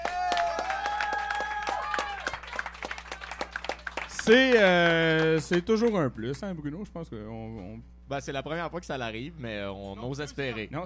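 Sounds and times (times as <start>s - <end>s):
whistles and cheers: 0.0s - 3.4s
audience applause: 0.0s - 5.6s
speech: 4.2s - 10.8s.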